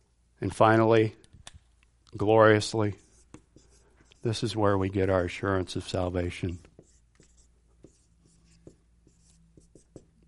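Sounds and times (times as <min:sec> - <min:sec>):
speech: 0:00.4 - 0:01.2, 0:02.1 - 0:03.0, 0:04.2 - 0:06.7
pen scratching while writing during a sermon: 0:03.0 - 0:04.4, 0:06.6 - 0:10.2.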